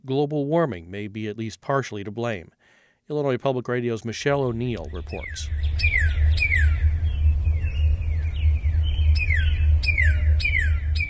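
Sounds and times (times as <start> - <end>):
speech: 0.1 - 6.0
low rumble: 4.3 - 11.0
cardinal calls: 4.5 - 11.0.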